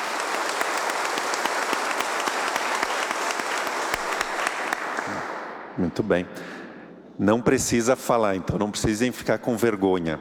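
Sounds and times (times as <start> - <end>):
audience applause: 0.0 - 5.4
speech: 5.8 - 6.6, 7.2 - 10.1.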